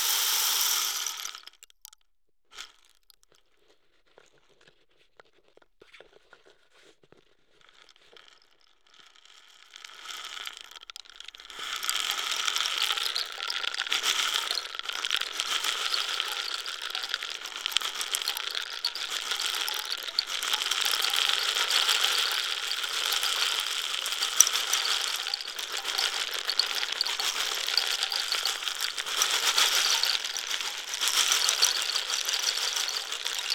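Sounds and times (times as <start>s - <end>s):
African rain stick: 0.0s - 1.7s, 9.9s - 33.5s.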